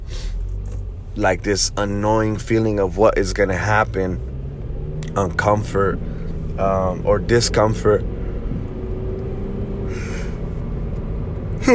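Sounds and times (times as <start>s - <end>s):
low rumble: 0.0s - 11.7s
speech: 1.2s - 4.3s, 5.2s - 8.1s
big yawn: 9.9s - 10.4s.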